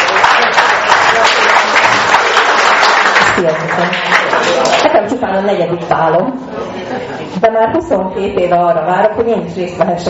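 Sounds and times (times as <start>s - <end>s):
audience applause: 0.0s - 5.1s
speech: 3.4s - 10.0s.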